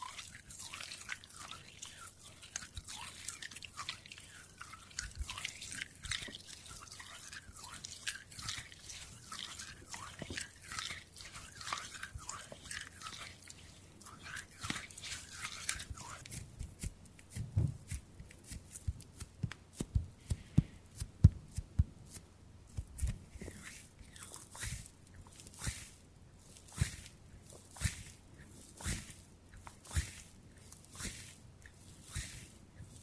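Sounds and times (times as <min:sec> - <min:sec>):
ASMR hand sounds, crackles, rubs and small clicks: 0:00.0 - 0:33.0
sharp taps and snaps: 0:16.6 - 0:21.9.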